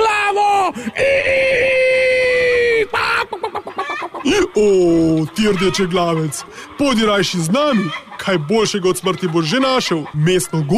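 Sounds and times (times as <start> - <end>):
laughter: 0.7 - 10.7
human voice imitating a rooster crowing: 1.0 - 3.3
speech: 4.6 - 10.7.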